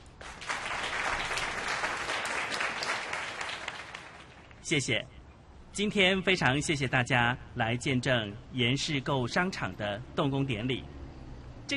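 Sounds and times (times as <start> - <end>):
audience applause: 0.0 - 4.5
speech: 4.7 - 5.2, 5.8 - 10.9.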